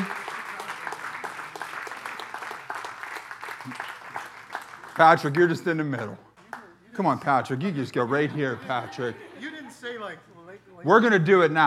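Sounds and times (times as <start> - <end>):
audience clapping: 0.0 - 6.8
speech: 3.6 - 3.8, 5.0 - 6.3, 7.0 - 11.6
laughter: 7.7 - 10.1.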